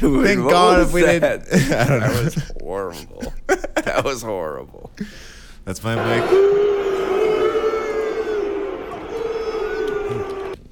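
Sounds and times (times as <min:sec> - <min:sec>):
laughter: 0:00.0 - 0:04.3
speech: 0:00.0 - 0:06.7
large crowd of soccer fans booing: 0:06.0 - 0:10.6.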